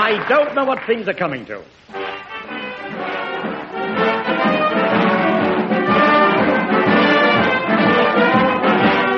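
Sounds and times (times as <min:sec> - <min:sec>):
speech: 0:00.1 - 0:02.0
station band playing music: 0:01.9 - 0:09.1.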